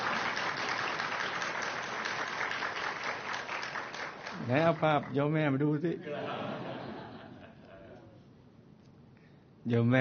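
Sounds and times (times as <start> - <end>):
audience applause: 0.0 - 5.1
speech: 4.5 - 6.7, 9.7 - 9.9
laughter: 6.0 - 8.2.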